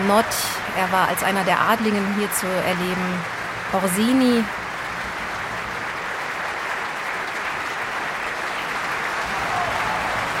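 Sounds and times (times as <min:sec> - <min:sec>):
speech: 0:00.1 - 0:04.6
audience applause at curtain call: 0:02.1 - 0:10.3.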